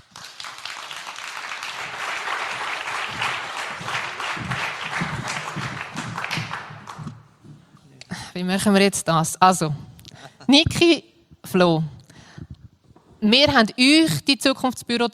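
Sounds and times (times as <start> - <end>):
audience applause: 0.0 - 7.6
speech: 8.4 - 9.9, 10.5 - 12.0, 13.2 - 15.1.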